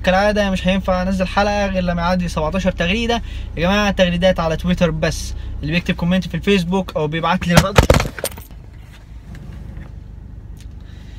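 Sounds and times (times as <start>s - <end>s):
speech: 0.0s - 8.3s
camera falling over: 7.6s - 8.5s.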